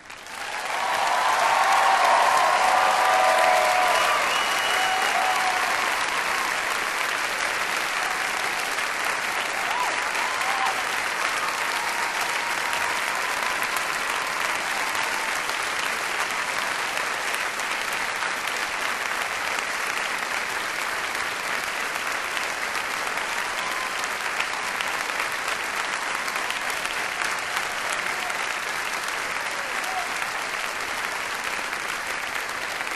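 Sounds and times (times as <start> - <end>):
large crowd applauding: 0.0 - 32.9
faint cheers: 0.2 - 15.6, 23.3 - 24.8, 29.4 - 30.6.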